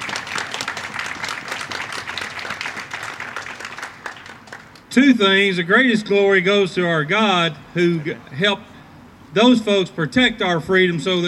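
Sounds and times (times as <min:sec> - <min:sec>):
audience applause: 0:00.0 - 0:04.8
speech: 0:05.0 - 0:08.7, 0:09.3 - 0:11.2.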